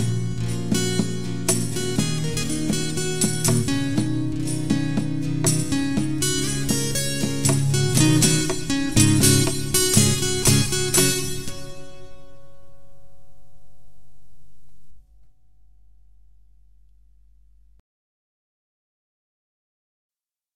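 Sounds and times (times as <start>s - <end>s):
disco guitar arrangement: 0.0s - 15.1s.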